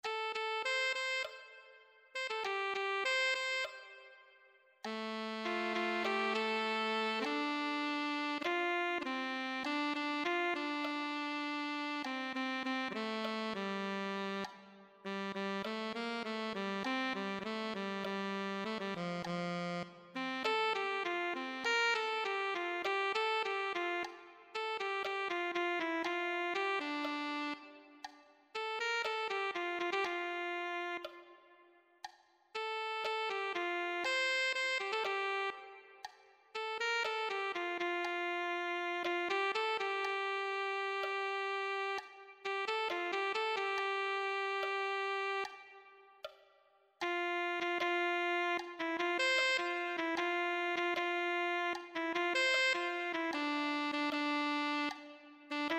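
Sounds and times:
alto saxophone: 0:00.0 - 0:31.6, 0:32.6 - 0:46.4, 0:47.0 - 0:55.7.

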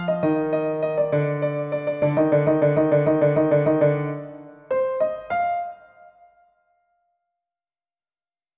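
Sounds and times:
solo piano: 0:00.0 - 0:06.5.

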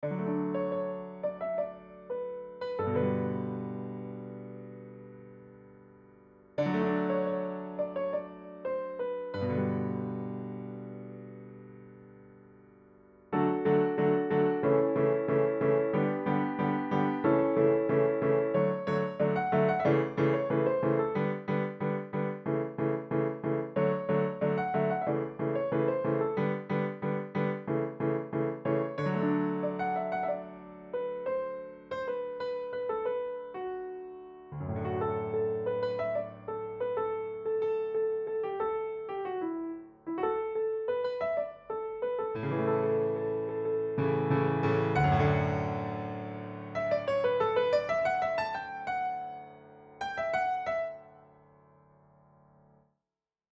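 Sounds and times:
solo piano: 0:00.0 - 0:52.9.

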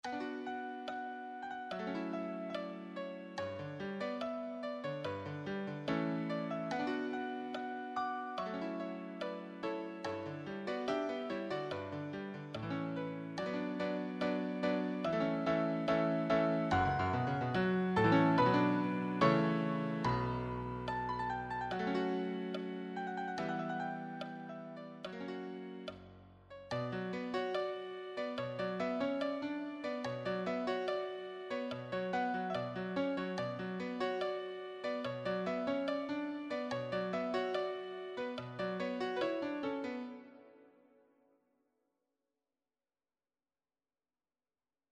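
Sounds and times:
advanced solo piano: 0:00.0 - 0:40.7.

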